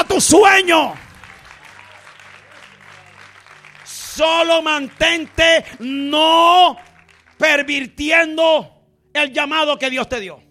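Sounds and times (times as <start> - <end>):
speech: 0.2 - 1.0, 4.2 - 10.4
audience applause: 0.9 - 7.4.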